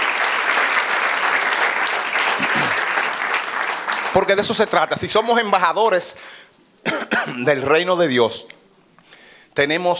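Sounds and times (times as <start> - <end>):
audience applause: 0.0 - 4.8
speech: 4.2 - 8.6, 9.6 - 9.9.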